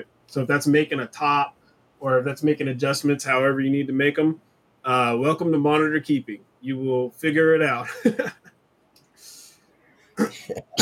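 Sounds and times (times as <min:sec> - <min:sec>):
speech: 0:00.0 - 0:08.4, 0:10.5 - 0:10.7
soft breathy hiss: 0:09.1 - 0:10.4
person coughing from choking on something: 0:10.2 - 0:10.7.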